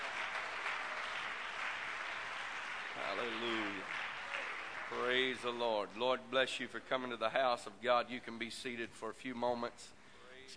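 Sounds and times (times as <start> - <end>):
audience clapping hands in praise: 0.0 - 5.8
speech: 3.0 - 4.0, 4.9 - 10.5.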